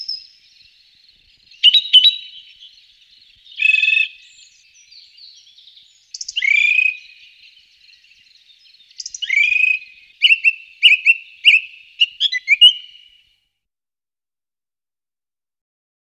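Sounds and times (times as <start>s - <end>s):
song thrush singing: 0.0s - 13.2s.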